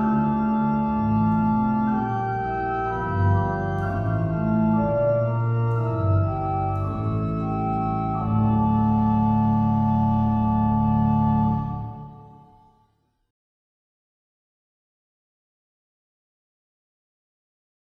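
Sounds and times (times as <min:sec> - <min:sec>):
organ chorale prelude: 0:00.0 - 0:12.8.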